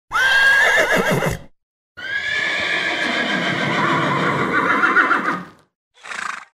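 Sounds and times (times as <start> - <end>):
horse whinnying: 0.1 - 6.5
horse snorting: 6.0 - 6.5.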